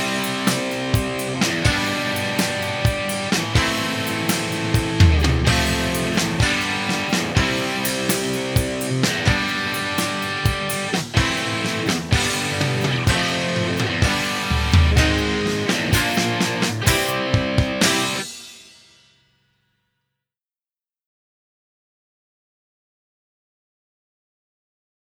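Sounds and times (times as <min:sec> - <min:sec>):
music without bass: 0:00.0 - 0:18.9.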